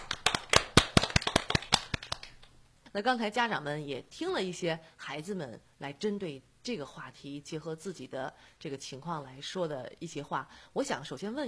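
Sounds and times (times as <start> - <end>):
small group clapping to welcome parents onto a children's program recording: 0.0 - 2.5
speech: 2.9 - 11.4.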